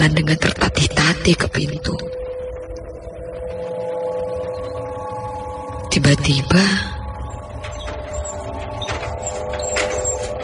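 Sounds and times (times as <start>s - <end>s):
speech: 0.0s - 2.2s, 6.0s - 6.9s
bier trolley being pushed outside the room: 7.2s - 10.4s.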